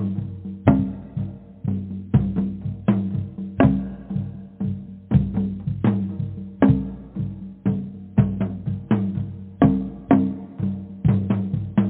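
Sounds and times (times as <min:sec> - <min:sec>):
powerful drumming: 0:00.0 - 0:11.8.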